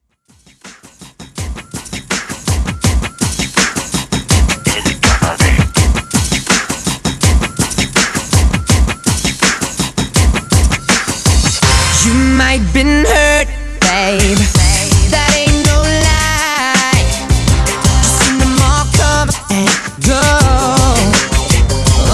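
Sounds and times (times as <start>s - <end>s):
clean music intro at 82 bpm: 0.3s - 22.1s.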